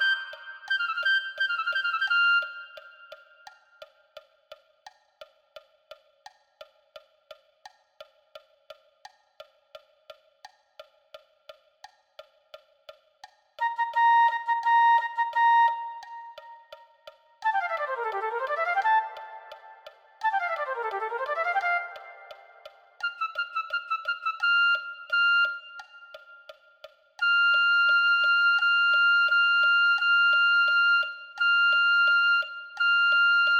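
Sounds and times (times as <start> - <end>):
flute: 0.0 - 3.6, 13.6 - 26.6, 27.2 - 33.5.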